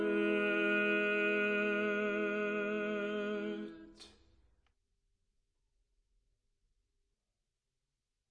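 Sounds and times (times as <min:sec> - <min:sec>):
tenor singing: 0:00.0 - 0:04.0.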